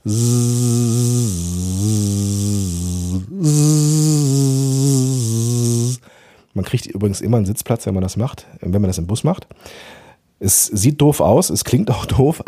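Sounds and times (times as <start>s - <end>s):
speech: 0.0s - 0.4s, 6.7s - 9.8s, 10.4s - 12.4s
person humming through a buzzing lip or straw trill: 0.0s - 6.0s.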